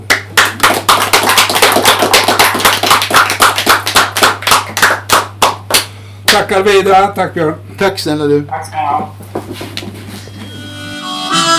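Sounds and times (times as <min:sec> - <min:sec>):
audience applause: 0:00.0 - 0:05.8
low electrical hum: 0:00.0 - 0:11.2
speech: 0:06.4 - 0:09.8.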